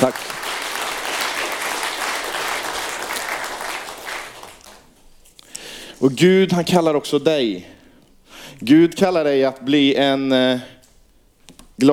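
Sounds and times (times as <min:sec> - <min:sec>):
speech: 0:00.0 - 0:00.3, 0:06.0 - 0:07.8, 0:08.6 - 0:10.8
audience applause: 0:00.0 - 0:04.9.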